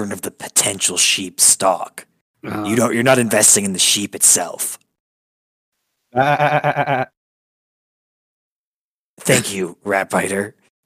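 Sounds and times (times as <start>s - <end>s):
speech: 0.0s - 4.8s, 6.1s - 7.2s, 9.2s - 10.6s
goat bleating: 6.2s - 7.1s.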